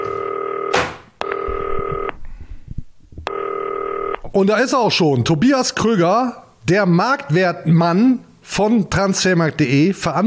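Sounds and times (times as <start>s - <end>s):
telephone ringing: 0.0s - 2.1s, 3.3s - 4.2s
speech: 4.4s - 10.2s.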